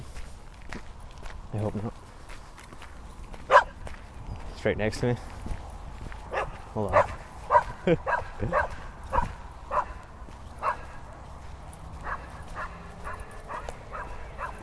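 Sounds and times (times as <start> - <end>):
speech: 1.5 - 2.0, 4.6 - 5.4, 6.8 - 7.1, 7.9 - 8.7
dog barking in short sharp yaps: 3.5 - 3.8, 6.3 - 10.0, 10.6 - 11.0, 12.0 - 14.6.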